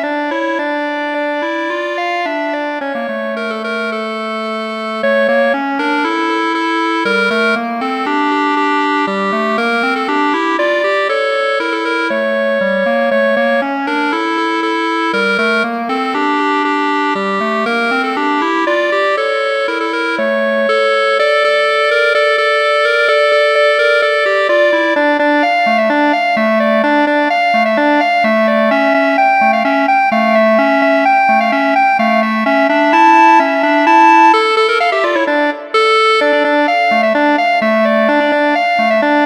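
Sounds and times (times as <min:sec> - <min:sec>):
clarinet duet: 0:00.0 - 0:39.2.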